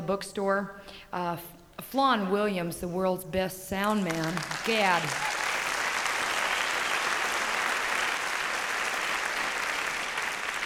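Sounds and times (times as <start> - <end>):
speech: 0.1 - 5.3
audience applause: 4.3 - 10.6.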